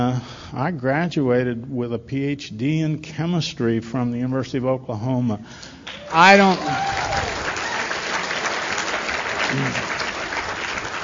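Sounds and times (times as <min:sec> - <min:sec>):
speech: 0:00.0 - 0:07.3, 0:09.5 - 0:09.9
audience clapping: 0:05.8 - 0:11.0.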